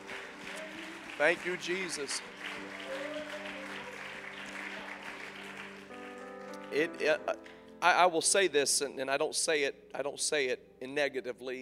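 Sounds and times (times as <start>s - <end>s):
audience hand clapping: 0.0s - 7.6s
speech: 1.2s - 2.8s, 6.8s - 11.6s.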